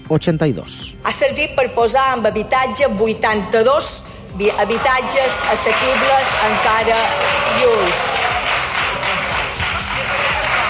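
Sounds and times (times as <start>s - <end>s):
speech: 0.1s - 8.4s
ironic applause from parliament benches: 4.4s - 10.6s.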